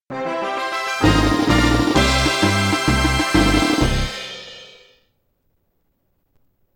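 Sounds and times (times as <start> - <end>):
victory fanfare: 0.1 - 4.9.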